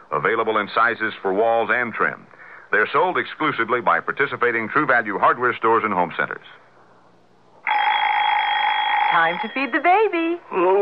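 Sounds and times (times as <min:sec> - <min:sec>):
speech: 0:00.1 - 0:06.6, 0:09.1 - 0:10.8
wind-up alarm clock ringing: 0:07.6 - 0:10.0.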